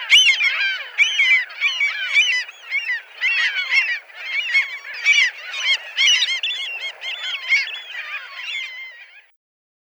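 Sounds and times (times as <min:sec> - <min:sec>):
Caspian gull calling: 0:00.0 - 0:09.3.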